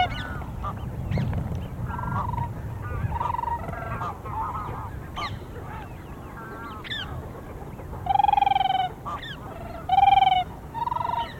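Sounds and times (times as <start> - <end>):
Siberian crane clear musical fluting calls: 0.0 - 1.2, 1.9 - 11.3.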